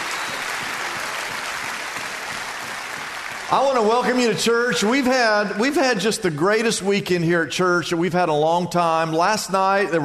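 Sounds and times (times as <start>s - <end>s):
audience clapping: 0.0s - 5.1s
speech: 3.5s - 10.0s.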